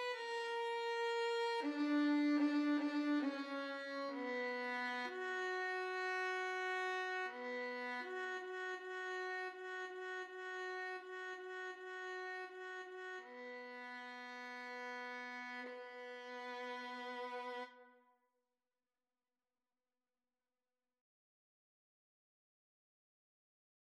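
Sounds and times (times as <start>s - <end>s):
violin pavane: 0.0s - 17.9s.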